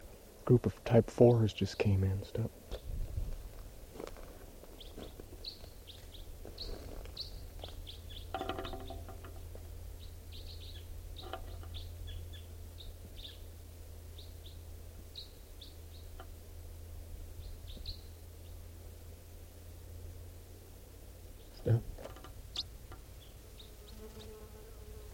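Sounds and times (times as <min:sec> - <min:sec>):
speech: 0:00.5 - 0:02.7
birds calling outdoors: 0:04.7 - 0:09.2, 0:10.0 - 0:16.3, 0:17.4 - 0:18.6, 0:21.3 - 0:24.4.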